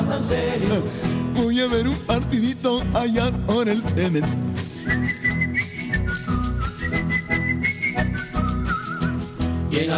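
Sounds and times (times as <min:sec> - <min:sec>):
speech: 0:00.1 - 0:05.5, 0:09.8 - 0:09.9
person whistling a tune: 0:04.8 - 0:09.5.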